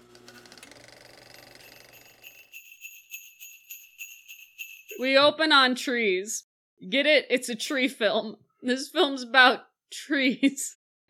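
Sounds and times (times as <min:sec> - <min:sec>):
sleigh bells jingling: 0:01.4 - 0:05.4
speech: 0:05.0 - 0:11.0.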